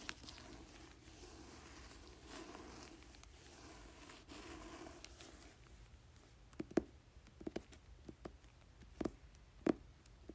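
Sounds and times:
fingers crinkling a book cover: 0.0 - 6.3
fingers tapping a book cover: 6.5 - 10.3.

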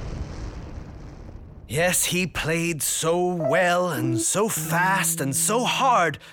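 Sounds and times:
speech: 1.7 - 6.3
piano exploding: 3.4 - 4.6.

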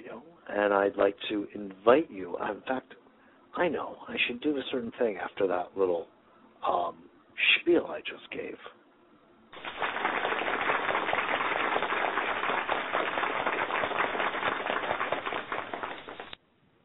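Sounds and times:
speech: 0.5 - 3.0, 3.6 - 8.8
applause sound effect: 9.5 - 16.4.

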